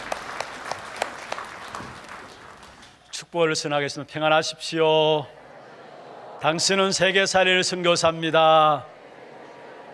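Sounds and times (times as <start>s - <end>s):
audience applause: 0.0s - 3.0s
speech: 3.3s - 5.4s, 6.4s - 9.0s.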